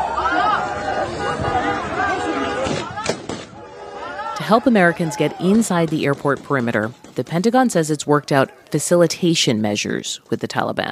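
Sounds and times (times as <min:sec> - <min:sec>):
chaotic crowd shouting at Kabul airport: 0:00.0 - 0:06.4
sharp cracks: 0:02.6 - 0:03.6, 0:05.7 - 0:07.4
speech: 0:04.5 - 0:10.9.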